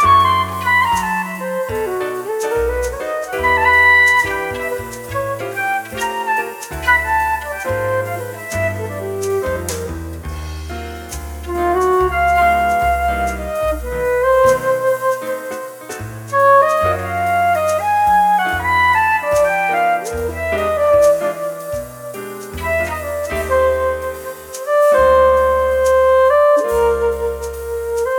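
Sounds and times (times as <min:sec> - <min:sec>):
jazz flute: 0:00.0 - 0:28.1.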